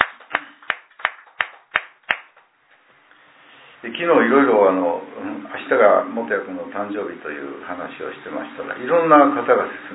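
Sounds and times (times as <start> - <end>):
audience applause: 0.0 - 2.3
speech: 3.8 - 9.9.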